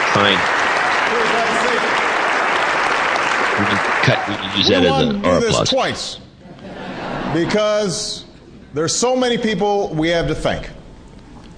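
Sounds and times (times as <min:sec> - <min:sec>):
audience applause from a large audience: 0:00.0 - 0:05.6
speech: 0:00.2 - 0:01.9, 0:03.6 - 0:06.3, 0:07.3 - 0:10.8
laughter: 0:03.4 - 0:07.6.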